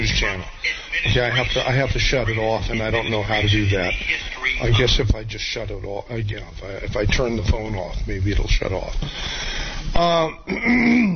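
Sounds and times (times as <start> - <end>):
speech: 0.4 - 11.1
throat clearing: 10.5 - 11.1.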